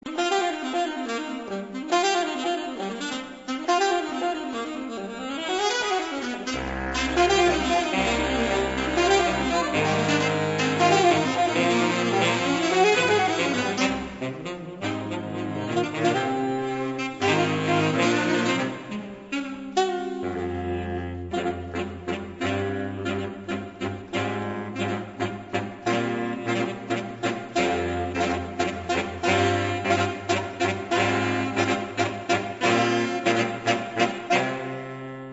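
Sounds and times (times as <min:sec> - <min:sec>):
jazz saxophone: 0:00.0 - 0:35.3.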